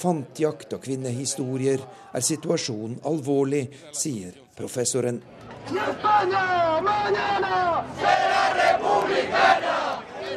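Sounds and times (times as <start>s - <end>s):
speech: 0.0s - 9.9s
demonstrators shouting in Madrid: 5.6s - 10.3s.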